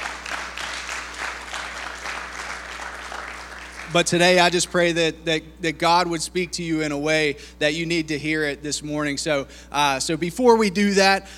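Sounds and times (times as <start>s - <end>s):
audience hand clapping: 0.0s - 4.3s
speech: 3.9s - 11.3s.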